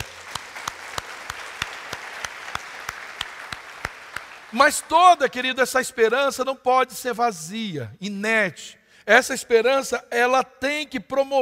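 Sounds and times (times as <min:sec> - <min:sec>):
audience applause: 0:00.0 - 0:04.9
speech: 0:04.5 - 0:11.3.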